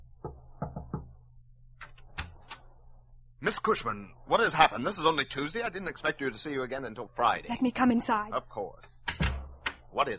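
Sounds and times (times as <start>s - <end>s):
low steady hum: 0.0s - 10.1s
soft knocks on an office door: 0.2s - 1.1s
speech: 3.4s - 9.0s, 9.9s - 10.1s.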